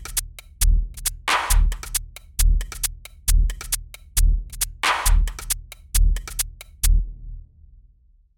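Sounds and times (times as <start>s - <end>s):
pumping house music: 0.0s - 6.8s.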